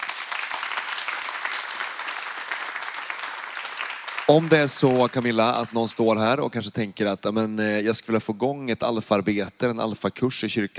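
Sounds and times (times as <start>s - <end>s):
room full of people clapping: 0.0s - 6.4s
speech: 4.3s - 10.7s.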